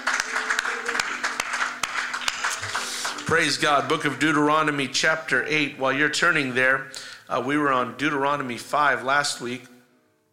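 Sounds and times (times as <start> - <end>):
audience hand clapping: 0.0 - 4.2
speech: 3.3 - 9.7.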